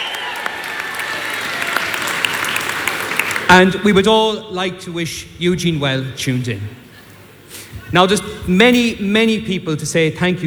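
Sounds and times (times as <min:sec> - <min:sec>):
round of applause: 0:00.0 - 0:03.6
speech: 0:03.5 - 0:06.8, 0:07.9 - 0:10.4.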